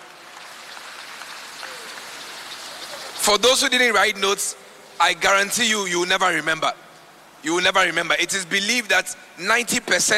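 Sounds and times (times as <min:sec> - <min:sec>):
audience clapping: 0:00.0 - 0:03.2
speech: 0:03.2 - 0:06.8, 0:07.4 - 0:10.1.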